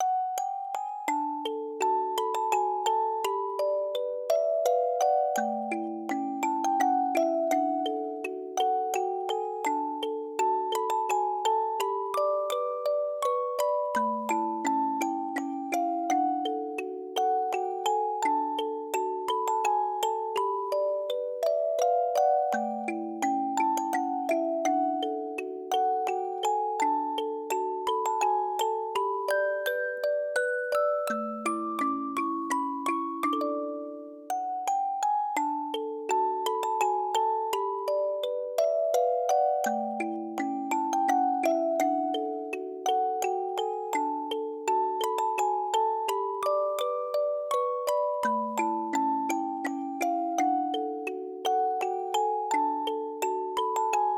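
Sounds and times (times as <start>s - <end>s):
music box: 0.0s - 54.1s.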